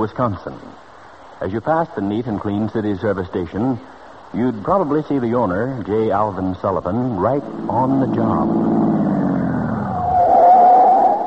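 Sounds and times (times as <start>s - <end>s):
speech: 0.0s - 0.8s, 1.4s - 9.2s
car engine rumble: 0.0s - 11.2s
car tires skidding on a sharp turn: 7.4s - 11.2s.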